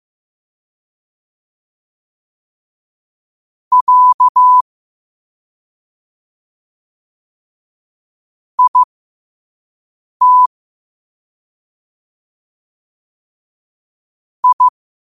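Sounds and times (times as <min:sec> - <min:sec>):
morse code at 5 wpm: 0:03.7 - 0:04.6, 0:08.6 - 0:08.9, 0:10.2 - 0:10.5, 0:14.4 - 0:14.7.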